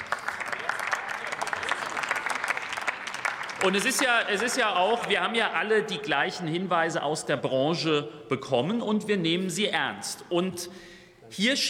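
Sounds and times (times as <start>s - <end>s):
crowd applause in a large parliament chamber: 0.0s - 5.2s
speech: 3.6s - 11.6s.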